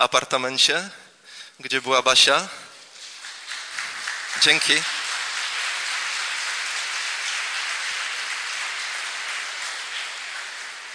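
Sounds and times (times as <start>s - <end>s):
speech: 0.0s - 1.0s, 1.6s - 2.7s, 4.4s - 5.0s
applause: 3.0s - 10.9s.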